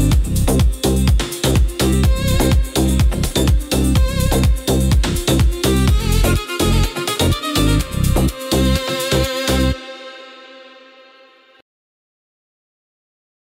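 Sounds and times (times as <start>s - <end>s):
Ukrainian folk ethno techno remix: 0.0s - 10.8s.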